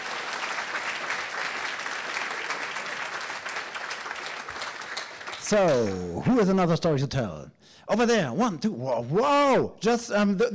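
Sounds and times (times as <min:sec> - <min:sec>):
audience applause: 0:00.0 - 0:06.0
speech: 0:05.5 - 0:10.5.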